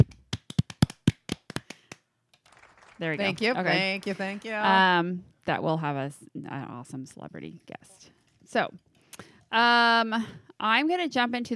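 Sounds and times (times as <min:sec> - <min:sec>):
people clapping hands: 0:00.0 - 0:05.0
speech: 0:03.0 - 0:08.9, 0:09.5 - 0:11.5.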